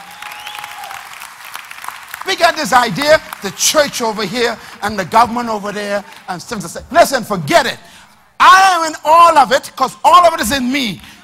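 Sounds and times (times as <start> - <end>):
audience clapping: 0.0 - 6.3
speech: 2.3 - 11.1.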